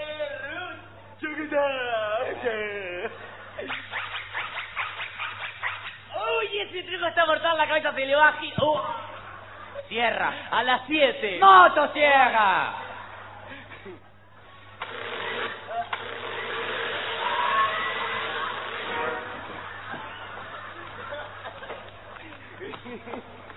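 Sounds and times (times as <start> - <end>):
speech: 1.5 - 4.2, 6.6 - 9.0, 9.8 - 12.8
laughter: 2.2 - 5.6, 8.6 - 10.6, 11.9 - 14.8, 15.4 - 16.2, 17.7 - 23.5
electric drill whirring: 14.8 - 19.2.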